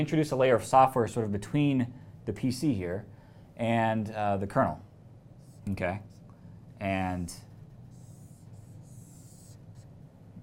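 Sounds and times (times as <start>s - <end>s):
speech: 0.0s - 4.9s, 5.6s - 6.1s, 6.8s - 7.5s
marker or pen drawing on a board: 5.4s - 6.3s, 7.4s - 9.9s.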